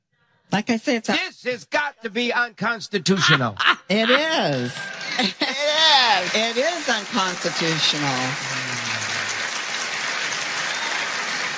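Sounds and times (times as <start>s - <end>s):
speech: 0.5s - 5.5s, 6.1s - 8.9s
laughter: 3.0s - 9.2s
audience applauding: 4.5s - 11.5s.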